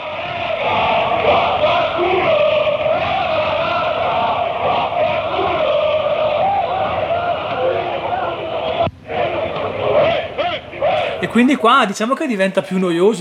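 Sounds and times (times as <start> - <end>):
football fans chanting choruses in stadium: 0.0 - 11.7
speech: 11.4 - 13.1.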